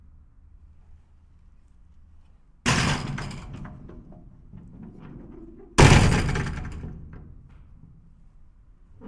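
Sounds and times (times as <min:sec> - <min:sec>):
door closing: 0:02.7 - 0:07.7.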